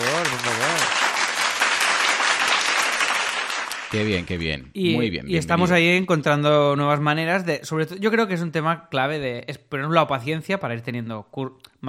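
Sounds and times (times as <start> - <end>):
crowd applause: 0.0 - 4.2
speech: 3.9 - 11.8.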